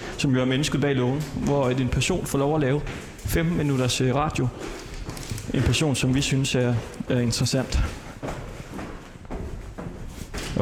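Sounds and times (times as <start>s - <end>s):
footsteps of someone walking down a flight of stairs: 0.0s - 10.6s
speech: 0.2s - 4.8s, 5.5s - 8.0s.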